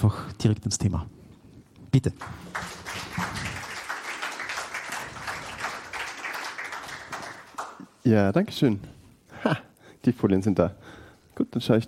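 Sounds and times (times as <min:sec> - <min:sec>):
speech: 0:00.0 - 0:01.2, 0:02.0 - 0:02.6, 0:08.0 - 0:11.8
audience applause: 0:02.2 - 0:07.9.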